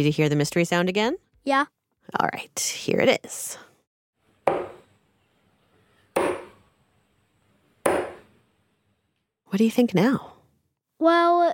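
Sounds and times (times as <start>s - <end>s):
speech: 0.0s - 3.7s, 9.5s - 10.3s, 11.0s - 11.5s
darts thrown onto a dartboard: 4.5s - 4.9s, 6.2s - 6.6s, 7.9s - 8.3s.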